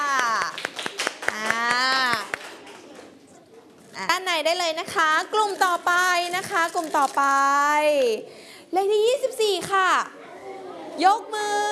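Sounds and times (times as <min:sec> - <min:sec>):
classroom applause: 0:00.0 - 0:03.2
speech: 0:04.4 - 0:10.2, 0:11.0 - 0:11.7.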